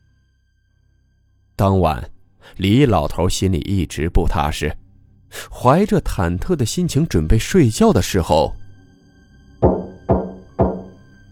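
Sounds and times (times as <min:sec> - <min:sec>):
speech: 0:01.6 - 0:08.6
firm knocks on a door: 0:09.6 - 0:11.0.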